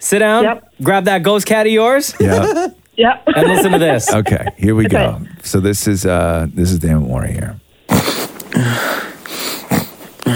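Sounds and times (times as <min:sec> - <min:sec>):
speech: 0:00.0 - 0:07.6
laughter: 0:02.1 - 0:05.5
person snorting while pretending to sleep: 0:02.2 - 0:02.8, 0:07.9 - 0:10.3.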